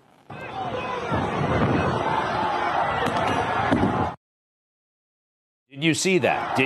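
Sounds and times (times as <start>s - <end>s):
crowd roaring and shouting: 0.3s - 4.2s, 5.8s - 6.6s
speech: 5.8s - 6.6s.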